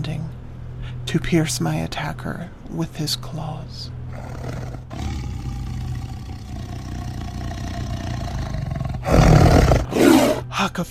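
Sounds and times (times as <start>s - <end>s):
speech: 1.1s - 4.7s, 10.5s - 10.8s
big cat snarling and roaring: 4.1s - 10.5s.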